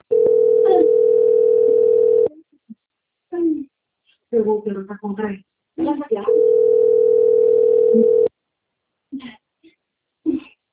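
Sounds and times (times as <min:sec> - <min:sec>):
telephone dial tone: 0:00.1 - 0:02.3, 0:06.3 - 0:08.3
speech: 0:04.3 - 0:06.8, 0:07.9 - 0:08.3.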